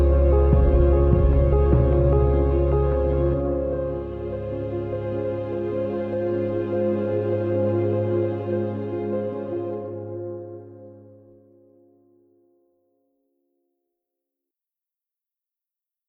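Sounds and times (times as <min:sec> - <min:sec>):
narrative treasure background music: 0:00.0 - 0:12.0.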